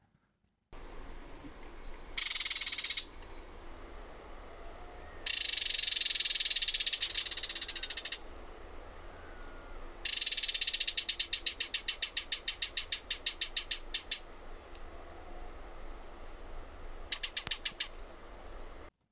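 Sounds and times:
low steady rumble: 0.8 - 18.9
barred warbler rattling song: 1.8 - 4.4, 5.1 - 14.8, 16.4 - 18.4.

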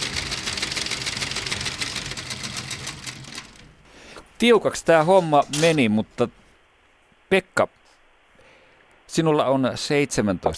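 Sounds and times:
quiz-show calculator starting up sound effect, mechanical rattling whir: 0.0 - 3.8
speech: 4.4 - 6.4, 7.3 - 7.8, 9.1 - 10.5.

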